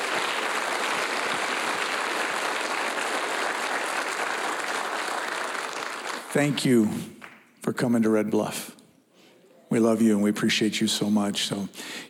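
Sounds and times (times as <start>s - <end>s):
audience applause: 0.0s - 6.6s
speech: 6.3s - 8.8s, 9.7s - 12.0s.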